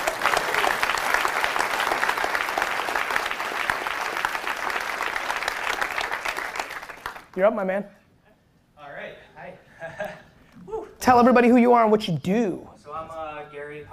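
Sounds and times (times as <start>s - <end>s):
audience applause: 0.0s - 7.4s
speech: 7.4s - 8.0s, 9.4s - 13.2s.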